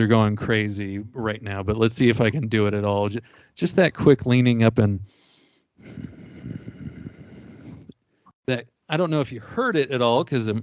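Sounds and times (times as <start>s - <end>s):
speech: 0.0s - 5.2s, 5.8s - 6.6s, 8.5s - 10.6s
voice imitating a T-Rex style back-of-the-throat growl: 5.8s - 7.9s.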